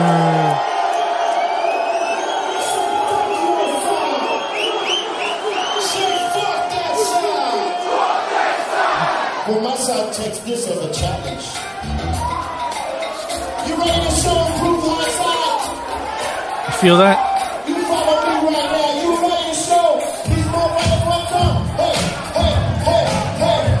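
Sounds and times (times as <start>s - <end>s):
loud crowd at a concert shouting and cheering: 0.0s - 23.7s
speech: 16.8s - 17.3s.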